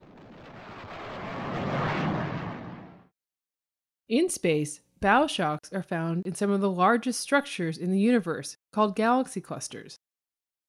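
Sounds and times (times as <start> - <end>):
sonic boom from supersonic plane: 0.0 - 3.1
speech: 4.1 - 10.0.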